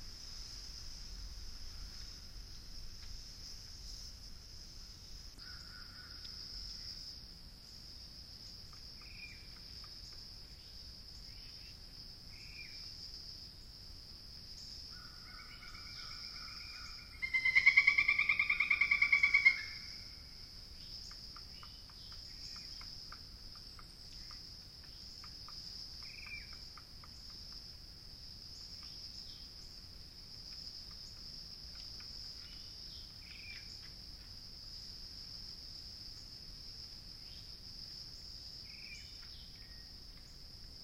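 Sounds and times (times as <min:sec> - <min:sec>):
distant Pileated Woodpecker: 0:05.4 - 0:07.0, 0:08.5 - 0:12.9, 0:14.6 - 0:27.7, 0:30.4 - 0:34.3.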